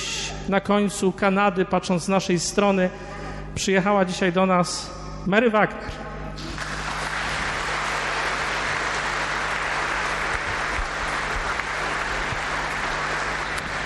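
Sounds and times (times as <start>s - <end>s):
speech: 0.5s - 6.1s
audience applause: 6.4s - 13.8s.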